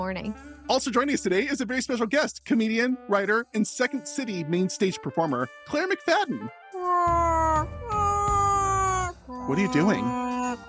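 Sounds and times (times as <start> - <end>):
speech: 0.0 - 7.8, 9.5 - 10.2
person imitating whale call: 6.8 - 10.6.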